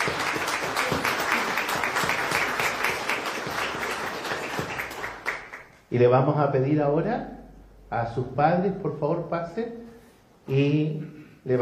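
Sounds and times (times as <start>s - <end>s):
applause: 0.0s - 5.8s
speech: 5.9s - 9.8s, 10.5s - 11.6s.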